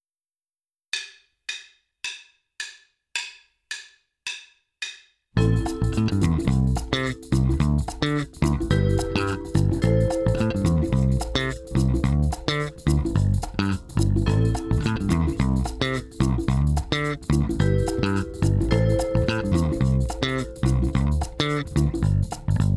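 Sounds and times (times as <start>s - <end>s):
funk music without drums: 5.4s - 22.7s.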